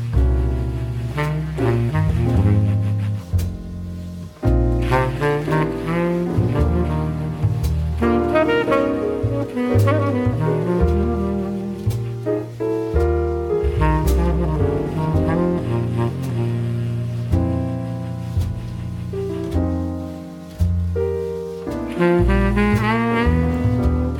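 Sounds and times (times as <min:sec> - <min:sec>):
jazz singer: 0:00.0 - 0:24.1.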